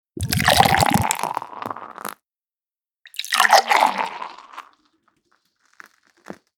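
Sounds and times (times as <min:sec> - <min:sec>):
beer pouring: 0:00.2 - 0:02.2, 0:03.1 - 0:04.8.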